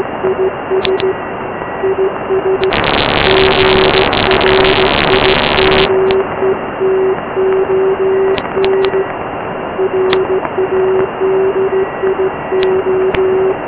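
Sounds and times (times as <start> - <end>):
start of SAQ Grimeton radio transmission: 0.0 - 9.2, 9.8 - 13.6.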